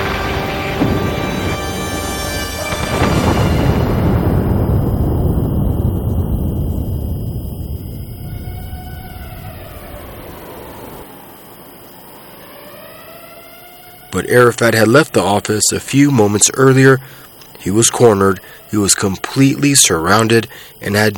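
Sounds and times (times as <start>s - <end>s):
steady tonal drone: 0.0s - 5.4s, 7.8s - 14.1s
missile striking an office and exploding: 0.0s - 11.1s
speech: 14.3s - 21.1s.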